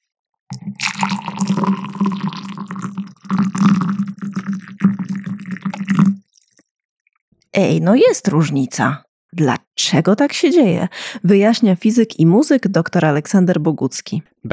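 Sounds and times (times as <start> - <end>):
hot water pouring into a vessel: 0.5 - 6.7
speech: 7.6 - 14.5.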